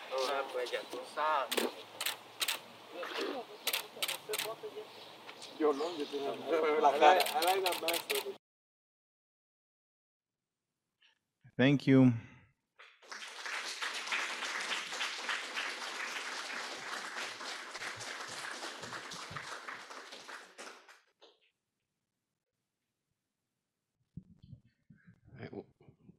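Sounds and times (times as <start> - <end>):
speech: 0.1 - 2.0, 2.9 - 8.4, 11.6 - 12.3
audience applauding: 13.0 - 21.1.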